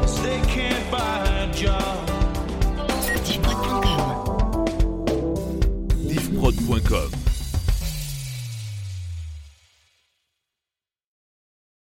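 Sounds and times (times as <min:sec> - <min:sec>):
pop rock funk medley: 0:00.2 - 0:07.6.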